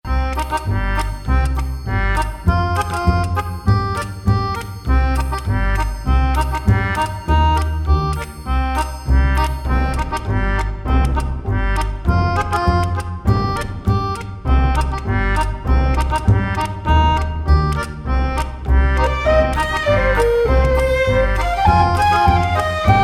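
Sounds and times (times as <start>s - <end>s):
music loop: 0.1s - 23.0s.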